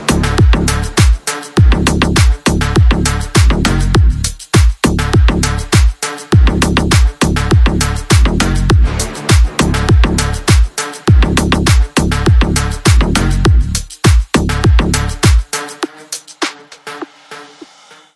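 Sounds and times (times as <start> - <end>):
car bass: 0.0 - 1.0, 1.6 - 5.8, 6.4 - 15.3.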